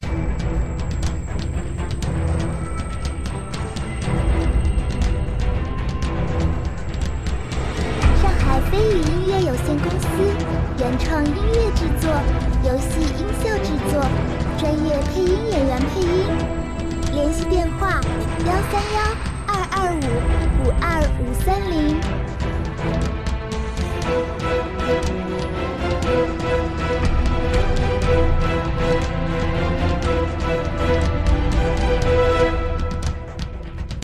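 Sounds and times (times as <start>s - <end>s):
dangerous tense boss battle music: 0.0s - 34.0s.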